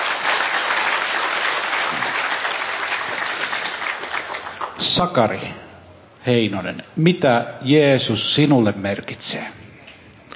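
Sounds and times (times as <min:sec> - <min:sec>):
audience applause: 0:00.0 - 0:04.8
speech: 0:05.0 - 0:05.6, 0:06.2 - 0:09.6.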